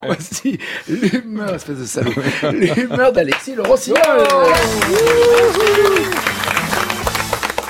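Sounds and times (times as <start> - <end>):
speech: 0.0 - 6.5
laughter: 0.0 - 7.1
studio audience applause: 3.3 - 7.6.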